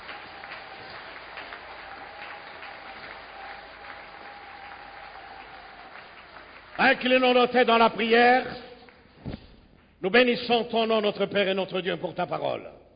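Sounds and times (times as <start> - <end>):
church congregation applauding: 0.0 - 9.2
speech: 6.8 - 8.6, 10.0 - 12.8.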